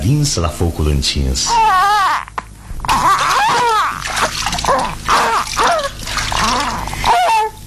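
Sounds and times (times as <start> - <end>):
speech: 0.0 - 2.0
water splashing in a bath while bathing a child: 2.9 - 7.6.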